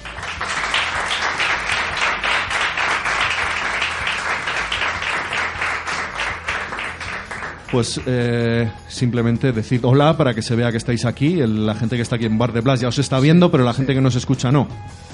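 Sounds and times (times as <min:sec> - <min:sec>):
audience applause: 0:00.0 - 0:07.8
speech: 0:07.7 - 0:15.1.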